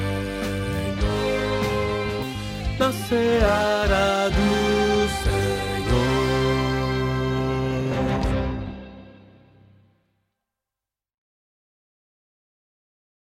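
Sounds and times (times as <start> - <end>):
bass playing hymns: 0.0 - 9.7.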